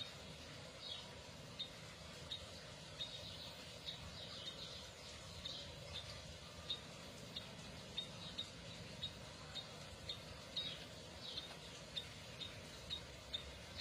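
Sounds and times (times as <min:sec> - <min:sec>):
canary chirping: 0:00.8 - 0:13.7.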